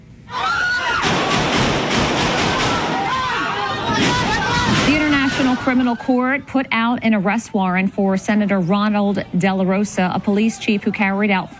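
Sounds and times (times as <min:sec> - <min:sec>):
chaotic shouting voices: 0:00.3 - 0:06.6, 0:08.5 - 0:11.5
gunshots during an attempted arrest at the Philippines Senate: 0:01.0 - 0:05.8
speech: 0:05.6 - 0:11.5.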